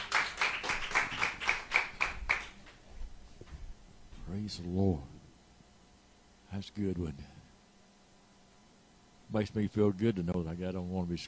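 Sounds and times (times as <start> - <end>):
audience clapping: 0.0 - 2.8
speech: 4.4 - 5.1, 6.5 - 7.4, 9.3 - 11.2.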